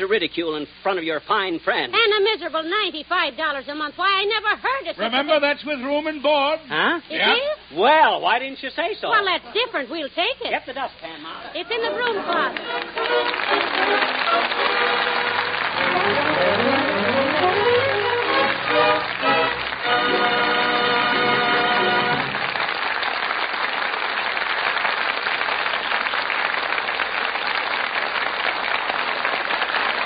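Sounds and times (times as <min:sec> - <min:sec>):
speech: 0:00.0 - 0:15.2
pitched music: 0:11.6 - 0:22.5
enthusiastic theater audience applause: 0:11.7 - 0:30.0.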